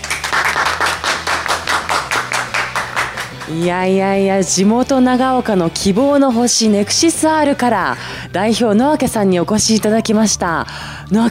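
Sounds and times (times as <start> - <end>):
small group clapping rhythmically: 0.0 - 3.8
speech: 3.5 - 11.2.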